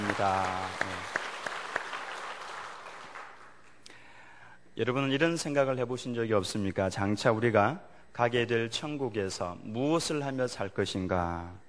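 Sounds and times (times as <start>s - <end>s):
audience applauding: 0.0s - 3.6s
speech: 0.2s - 1.2s, 4.8s - 11.6s.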